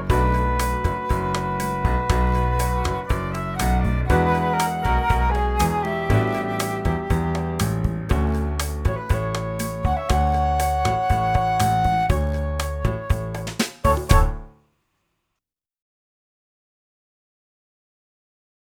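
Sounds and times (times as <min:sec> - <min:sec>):
sunny flute melody: 0:00.0 - 0:14.6.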